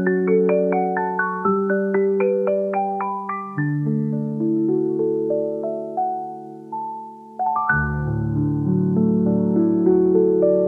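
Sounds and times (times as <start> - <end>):
calm piano piece: 0.0 - 10.6.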